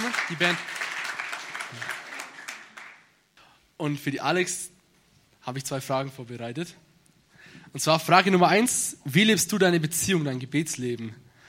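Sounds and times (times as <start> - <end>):
audience applause: 0.0 - 3.1
speech: 0.3 - 0.7, 1.7 - 1.9, 3.8 - 4.7, 5.5 - 6.8, 7.7 - 11.2.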